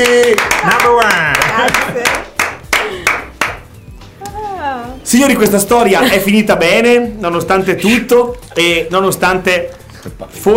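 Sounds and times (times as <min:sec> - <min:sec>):
audience hand claps at a live show: 0:00.0 - 0:03.7
speech: 0:05.1 - 0:10.5.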